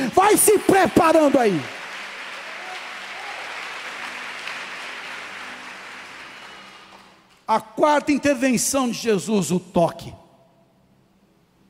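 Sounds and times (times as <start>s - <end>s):
crowd clapping: 0.0s - 7.5s
speech: 0.3s - 1.8s, 7.5s - 10.2s.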